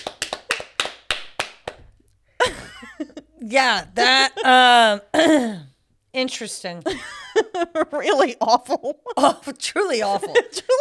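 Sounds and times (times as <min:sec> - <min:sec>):
audience clapping: 0:00.0 - 0:02.0
laughter: 0:02.4 - 0:04.9, 0:06.9 - 0:10.7
speech: 0:02.5 - 0:10.7.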